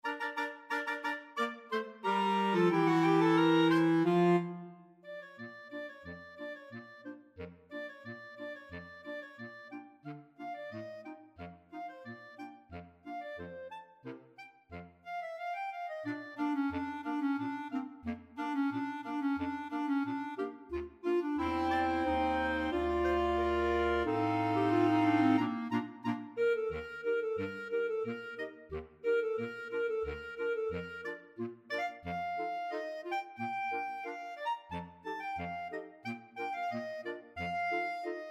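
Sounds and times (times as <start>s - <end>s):
clarinet choir: 0.0s - 38.2s.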